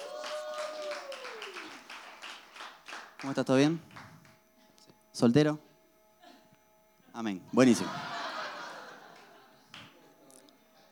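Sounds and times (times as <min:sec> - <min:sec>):
falling whoop: 0:00.0 - 0:01.9
audience applause: 0:00.0 - 0:04.3
speech: 0:03.2 - 0:03.9, 0:05.2 - 0:05.7, 0:07.2 - 0:08.1
laughter: 0:07.6 - 0:10.9.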